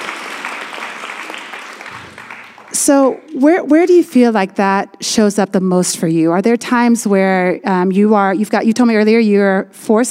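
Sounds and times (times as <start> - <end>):
audience round of applause: 0.0 - 3.1
speech: 2.9 - 10.0.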